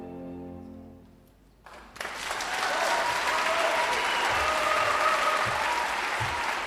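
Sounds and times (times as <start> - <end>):
concert audience applause in Leipzig Felsenkeller: 1.7 - 6.6.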